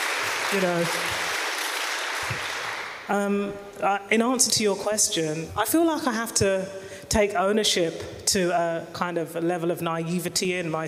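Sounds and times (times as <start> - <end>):
audience applause for a journalist and writer: 0.0 - 3.1
speech: 0.5 - 1.3, 2.3 - 10.8.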